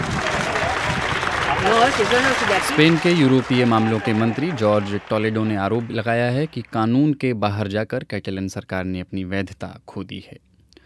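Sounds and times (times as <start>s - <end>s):
crowd applause welcoming Catalan separatist leaders leaving court: 0.0s - 6.9s
speech: 1.8s - 10.5s.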